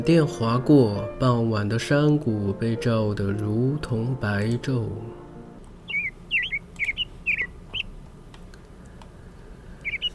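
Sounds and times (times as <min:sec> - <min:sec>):
speech: 0:00.0 - 0:05.2
young magpie's alarmed cries: 0:05.8 - 0:08.0, 0:09.7 - 0:10.1.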